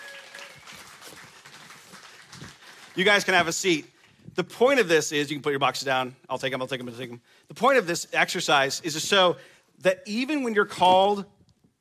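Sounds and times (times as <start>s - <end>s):
round of applause: 0.0s - 3.6s
speech: 3.0s - 11.4s.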